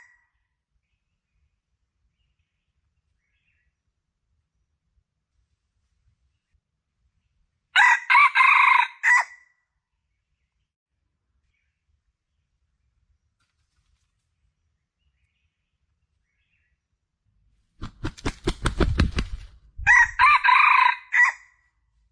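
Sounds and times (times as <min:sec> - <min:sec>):
Red junglefowl crowing: 0:07.8 - 0:09.4, 0:19.8 - 0:21.5.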